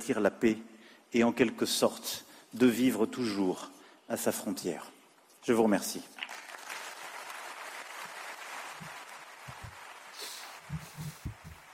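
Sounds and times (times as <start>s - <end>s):
speech: 0.0s - 6.2s
audience applause at the Vatican: 6.3s - 11.7s.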